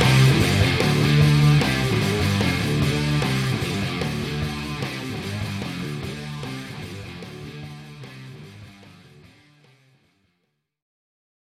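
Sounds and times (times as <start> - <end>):
heavy drive: 0.0 - 8.4.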